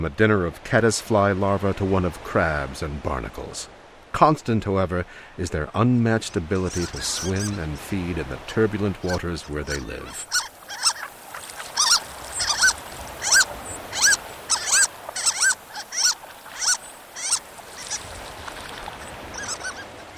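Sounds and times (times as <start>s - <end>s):
speech: 0.0s - 10.5s
soft hiss: 3.2s - 19.3s
harlequin duck calls: 9.0s - 18.1s, 19.2s - 20.1s.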